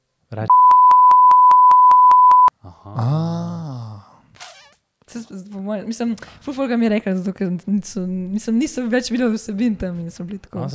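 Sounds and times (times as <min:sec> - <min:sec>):
speech: 0:00.3 - 0:00.7, 0:05.2 - 0:10.7
censor bleep over a name: 0:00.5 - 0:02.5.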